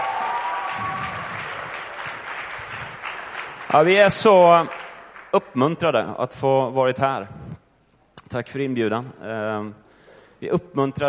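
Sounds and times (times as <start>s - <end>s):
audience applause: 0.0s - 5.3s
speech: 3.7s - 7.4s, 8.3s - 9.8s, 10.4s - 11.0s.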